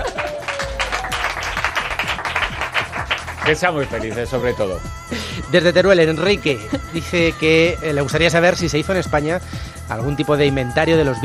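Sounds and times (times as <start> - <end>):
applause: 0.0 - 4.0
speech: 3.5 - 11.2.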